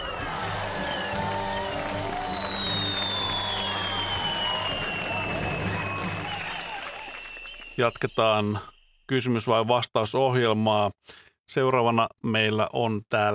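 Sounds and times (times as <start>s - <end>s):
audience applause: 0.0s - 8.2s
speech: 7.8s - 13.3s.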